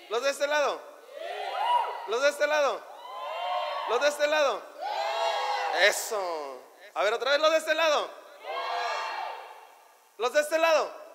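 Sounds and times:
speech: 0:00.1 - 0:01.3, 0:02.1 - 0:02.9, 0:03.9 - 0:04.7, 0:05.7 - 0:08.2, 0:10.2 - 0:11.0
audience shouting in response: 0:01.0 - 0:02.2, 0:02.9 - 0:06.1, 0:08.4 - 0:09.6.

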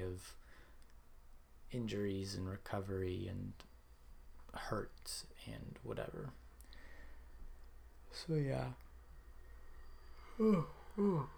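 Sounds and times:
speech: 0:00.0 - 0:00.4, 0:01.7 - 0:03.7, 0:04.5 - 0:06.4, 0:08.1 - 0:08.8, 0:10.4 - 0:11.3
person yawning: 0:10.3 - 0:11.3.

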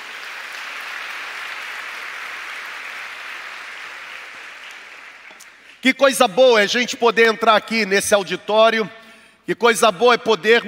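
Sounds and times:
audience applauding: 0:00.0 - 0:05.6
speech: 0:05.8 - 0:10.6.

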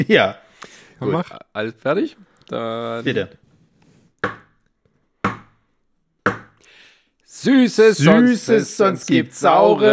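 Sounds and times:
speech: 0:00.0 - 0:03.4, 0:07.4 - 0:09.9
knocks for a Halloween trick-or-treat skit: 0:04.2 - 0:04.5, 0:05.2 - 0:05.6, 0:06.2 - 0:06.6.

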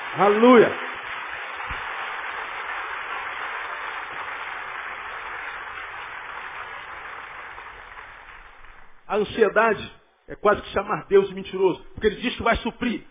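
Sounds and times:
audience applause: 0:00.0 - 0:09.1
speech: 0:00.2 - 0:00.8, 0:09.2 - 0:13.0.

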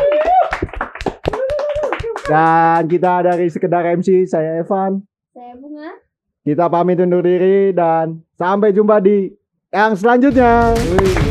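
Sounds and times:
applause: 0:00.0 - 0:03.6, 0:10.6 - 0:11.2
speech: 0:02.3 - 0:11.2.

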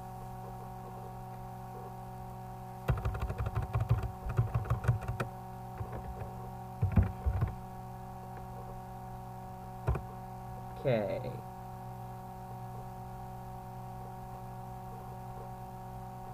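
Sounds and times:
typing on a computer keyboard: 0:02.9 - 0:07.6, 0:09.9 - 0:10.1
speech: 0:10.9 - 0:11.4.

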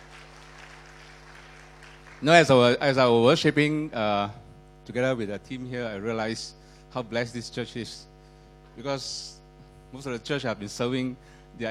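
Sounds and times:
audience applause for musicians: 0:00.0 - 0:02.8
speech: 0:02.2 - 0:08.1, 0:08.8 - 0:11.6.

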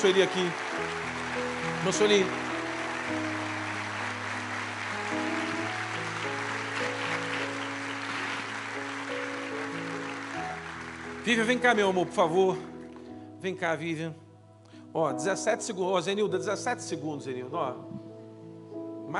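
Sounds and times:
speech: 0:00.0 - 0:00.9, 0:01.8 - 0:02.5, 0:03.1 - 0:03.4, 0:11.2 - 0:12.7, 0:13.4 - 0:14.2, 0:14.9 - 0:18.0
audience applause: 0:00.0 - 0:12.3.

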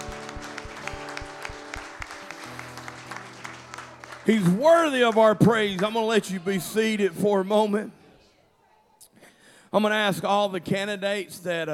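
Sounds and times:
hand clapping in praise: 0:00.0 - 0:06.4
speech: 0:04.2 - 0:08.0, 0:09.7 - 0:11.7.

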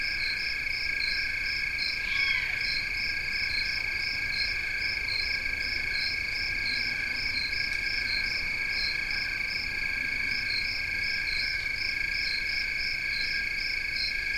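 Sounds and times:
crickets trilling: 0:00.0 - 0:14.3
faint falling owl begging call: 0:02.0 - 0:02.7.

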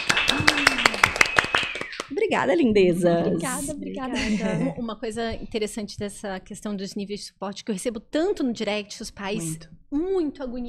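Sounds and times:
hands clapping: 0:00.0 - 0:02.6
speech: 0:02.3 - 0:10.6
vocal sound: 0:02.6 - 0:05.4, 0:09.4 - 0:09.7
laughter: 0:03.0 - 0:04.9.

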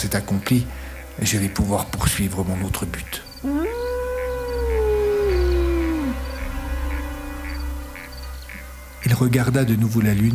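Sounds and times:
speech: 0:00.0 - 0:03.8, 0:09.1 - 0:10.3
wolf howling: 0:03.4 - 0:06.6.

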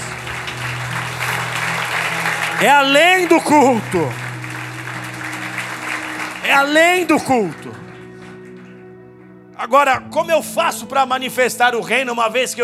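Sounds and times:
audience applause: 0:00.0 - 0:09.4
speech: 0:02.6 - 0:04.2, 0:06.5 - 0:07.8, 0:09.6 - 0:12.6.

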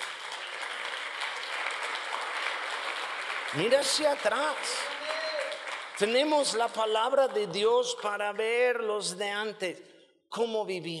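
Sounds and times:
audience applause: 0:00.0 - 0:07.5
speech: 0:03.5 - 0:05.0, 0:06.0 - 0:10.9.

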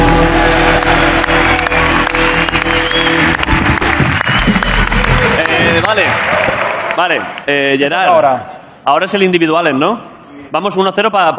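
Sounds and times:
audience applause: 0:00.0 - 0:07.5
speech: 0:07.0 - 0:11.3.

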